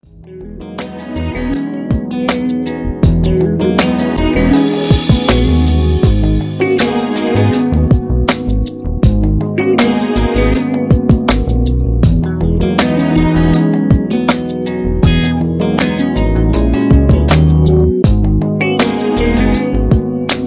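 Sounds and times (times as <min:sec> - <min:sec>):
groove beats: 0:00.8 - 0:20.4.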